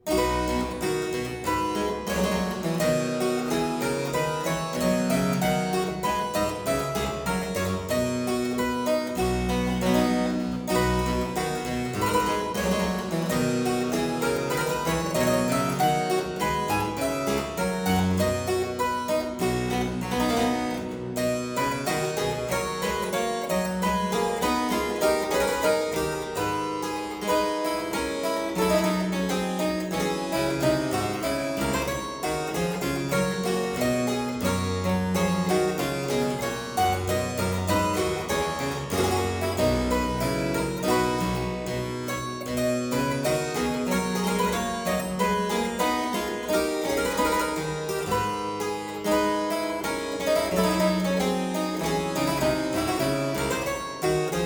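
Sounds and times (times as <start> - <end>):
harpsichord playing a variation: 0.0 - 54.4.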